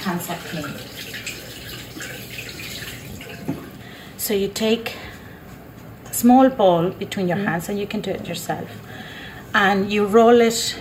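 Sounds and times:
hands washed under a running tap: 0:00.0 - 0:03.9
speech: 0:00.1 - 0:01.1, 0:04.3 - 0:05.0, 0:06.2 - 0:08.9, 0:09.5 - 0:10.7.

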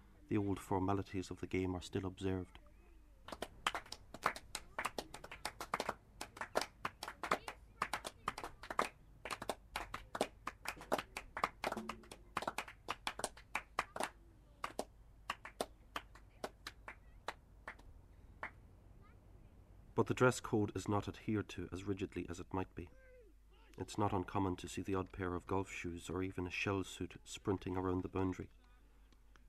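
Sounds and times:
speech: 0:00.3 - 0:02.6, 0:20.1 - 0:23.1, 0:23.8 - 0:28.6
cricket spectators applauding scoring shots: 0:03.3 - 0:16.8.

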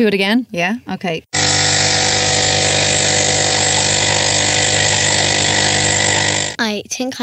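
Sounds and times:
speech: 0:00.0 - 0:01.4, 0:06.6 - 0:07.2
electric coffee maker running: 0:01.4 - 0:06.6.

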